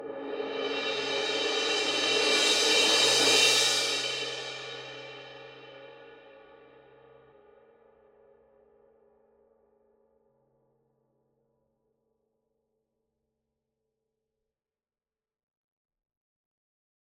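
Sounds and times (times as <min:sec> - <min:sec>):
cymbal crash swell with soft medium beater: 0:00.4 - 0:05.4.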